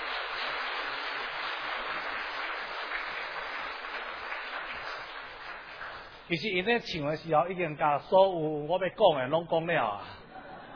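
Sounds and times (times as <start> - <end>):
crowd applause: 0.0 - 6.3
speech: 6.3 - 10.2.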